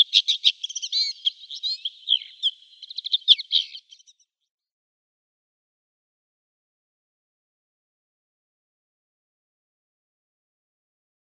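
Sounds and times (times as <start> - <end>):
Red-backed Shrike song: 0.0 - 4.5.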